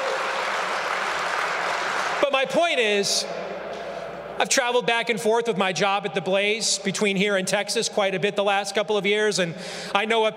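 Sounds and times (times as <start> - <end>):
audience applause: 0.0 - 2.6
speech: 2.3 - 3.8, 4.4 - 10.3.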